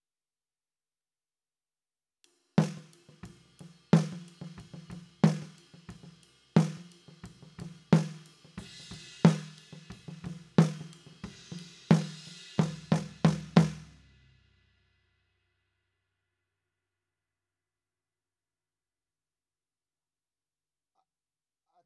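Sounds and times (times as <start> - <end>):
snare drum: 2.6 - 14.0.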